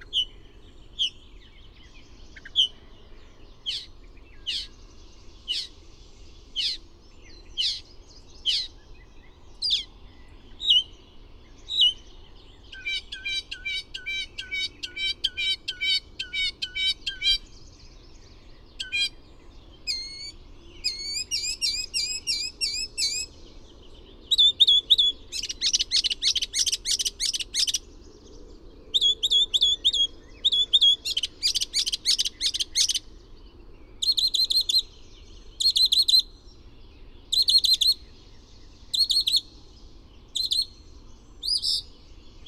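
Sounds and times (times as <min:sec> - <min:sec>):
bird singing: 0:00.0 - 0:42.4.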